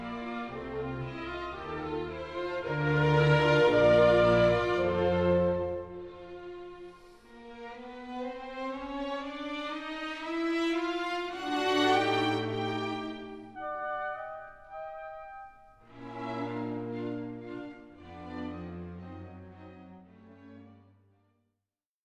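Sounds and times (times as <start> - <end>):
piano concerto: 0.0 - 7.0, 10.7 - 20.2.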